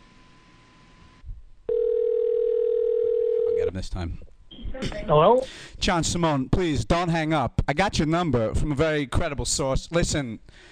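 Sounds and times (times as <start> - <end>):
telephone dial tone while calling: 1.7 - 3.6
speech: 3.7 - 10.7.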